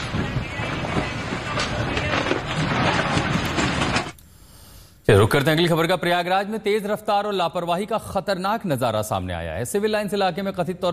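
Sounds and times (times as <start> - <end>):
formerly residential building in ruins being demolished: 0.0 - 4.2
speech: 5.1 - 10.9.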